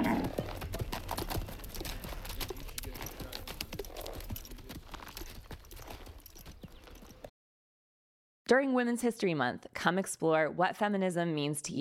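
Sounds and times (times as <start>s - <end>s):
mule hooves clip-clopping over hard ground: 0.0s - 7.3s
speech: 8.5s - 11.7s.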